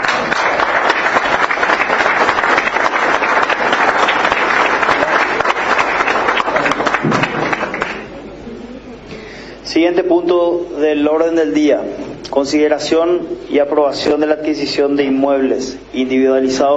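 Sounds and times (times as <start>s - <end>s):
assembly audience giving warm applause: 0.0s - 8.2s
speech: 9.9s - 16.7s.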